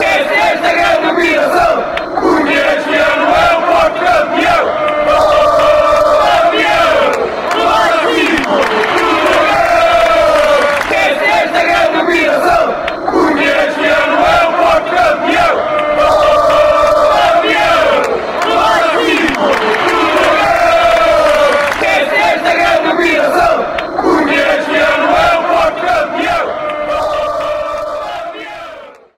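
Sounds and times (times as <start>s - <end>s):
football fans chanting: 0.0s - 29.1s.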